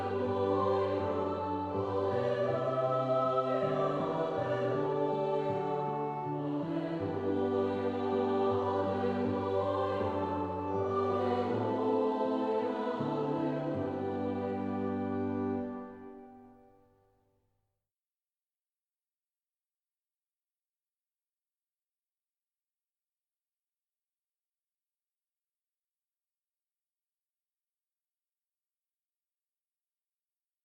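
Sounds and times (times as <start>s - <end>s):
4 voices singing: 0.0s - 15.9s.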